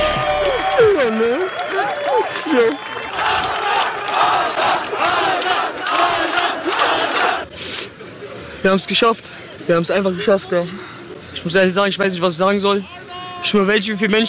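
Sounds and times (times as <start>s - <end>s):
fans cheering a runner finishing in Los Angeles: 0.0s - 7.5s, 12.8s - 14.2s
speech: 1.1s - 1.6s, 2.2s - 3.5s, 8.6s - 14.2s.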